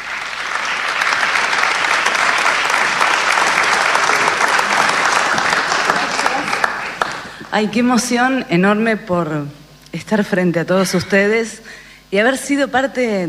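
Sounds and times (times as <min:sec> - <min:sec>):
audience applause: 0:00.0 - 0:07.5
speech: 0:07.6 - 0:13.2.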